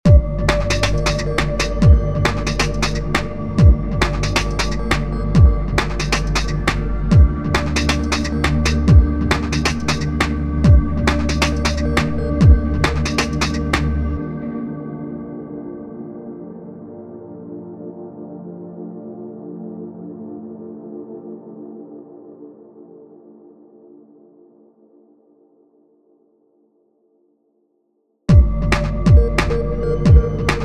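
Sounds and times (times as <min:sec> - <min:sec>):
beats: 0:00.1 - 0:14.1, 0:28.3 - 0:30.6.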